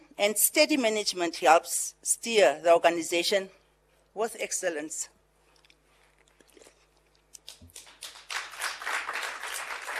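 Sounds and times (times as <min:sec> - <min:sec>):
speech: 0:00.2 - 0:03.6, 0:04.2 - 0:05.2
audience clapping: 0:07.4 - 0:09.9.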